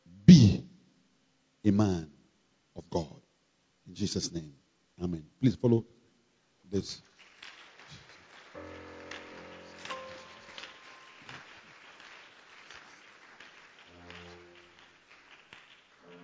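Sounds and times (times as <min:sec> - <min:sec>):
speech: 0:01.6 - 0:02.2, 0:02.8 - 0:03.2, 0:03.9 - 0:06.0, 0:06.7 - 0:07.1
audience clapping: 0:07.0 - 0:16.2.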